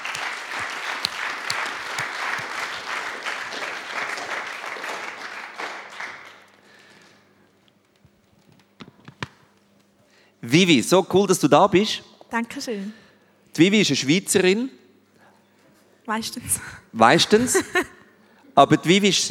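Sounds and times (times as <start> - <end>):
crowd applause: 0.0 - 7.1
speech: 10.5 - 13.0, 13.6 - 14.8, 16.1 - 17.9, 18.6 - 19.3.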